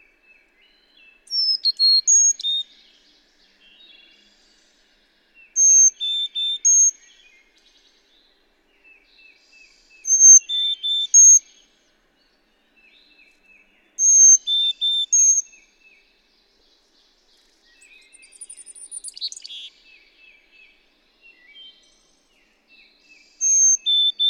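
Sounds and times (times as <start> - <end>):
Carolina chickadee calling: 1.3 - 2.6, 5.6 - 7.0, 10.1 - 11.4, 14.0 - 15.4, 23.4 - 24.2.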